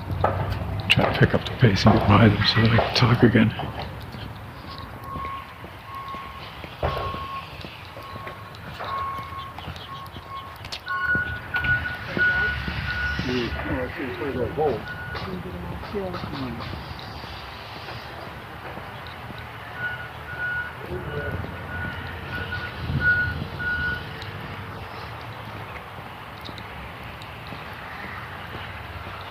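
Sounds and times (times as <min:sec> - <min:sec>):
low rumbling engine drone: 0:00.0 - 0:29.3
speech: 0:00.2 - 0:04.0, 0:15.9 - 0:16.9
heavy equipment reversing beeps: 0:04.6 - 0:13.6, 0:14.2 - 0:15.4, 0:19.7 - 0:24.2.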